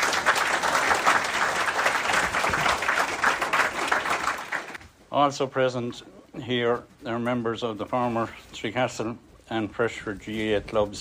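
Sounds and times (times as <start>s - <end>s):
crowd applause: 0.0s - 4.8s
speech: 5.2s - 10.9s.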